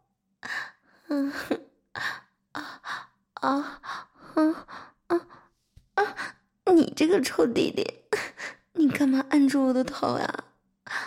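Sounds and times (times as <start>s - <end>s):
woman panting heavily: 0.4s - 6.4s
speech: 3.4s - 3.8s, 7.0s - 8.0s, 9.0s - 10.4s.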